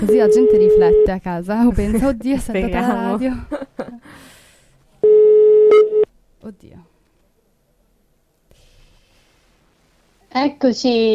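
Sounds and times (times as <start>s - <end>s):
telephone ringing tone of an outgoing call: 0.0s - 1.1s, 5.0s - 6.1s
speech: 0.0s - 4.3s, 6.4s - 6.9s, 10.3s - 11.1s.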